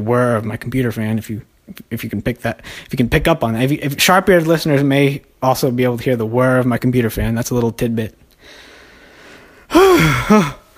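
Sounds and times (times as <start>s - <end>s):
speech: 0.0s - 8.6s, 9.7s - 10.6s
person gasping for breath, out of breath: 8.4s - 10.7s.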